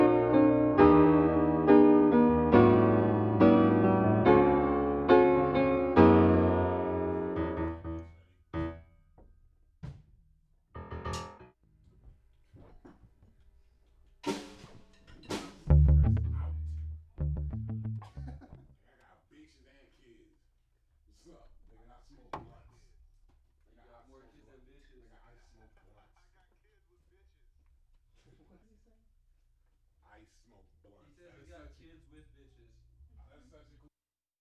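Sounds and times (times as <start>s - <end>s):
instrumental music: 0.0s - 8.9s, 10.8s - 11.5s, 14.3s - 18.6s.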